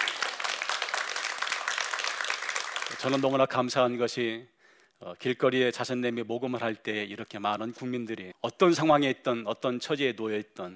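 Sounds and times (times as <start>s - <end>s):
audience applause: 0.0s - 3.4s
speech: 2.9s - 10.7s.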